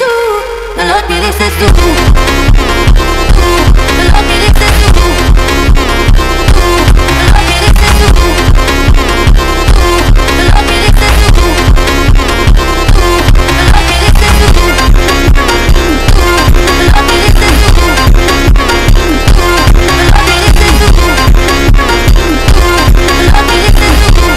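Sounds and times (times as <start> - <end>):
sped up phonk music: 0.1 - 24.3.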